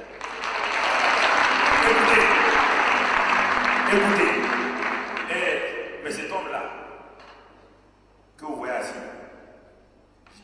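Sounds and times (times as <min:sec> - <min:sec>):
audience applause: 0:00.0 - 0:05.8
speech: 0:03.9 - 0:04.3.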